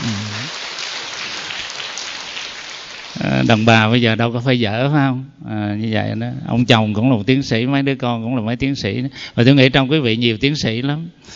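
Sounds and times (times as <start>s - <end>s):
audience applause: 0.0s - 3.7s
speech: 3.5s - 11.3s.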